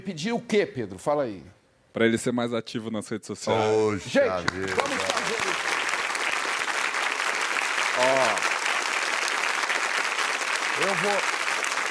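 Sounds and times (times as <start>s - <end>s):
speech: 0.0s - 4.9s, 11.0s - 11.4s
audience clapping: 4.3s - 11.8s.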